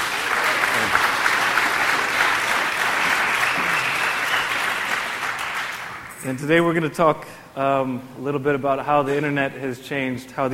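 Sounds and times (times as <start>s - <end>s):
audience applause: 0.0s - 6.2s
speech: 6.2s - 10.5s.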